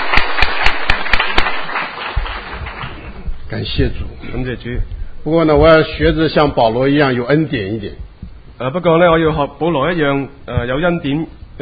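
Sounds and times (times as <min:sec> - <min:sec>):
applause: 0:00.0 - 0:03.2
speech: 0:03.6 - 0:11.6.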